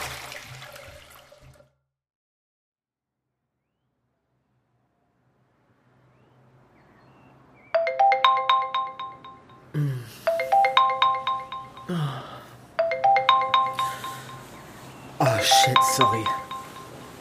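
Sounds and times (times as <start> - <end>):
alarm clock ringing: 7.8 - 9.7, 10.3 - 11.9, 12.8 - 14.6, 15.2 - 17.2.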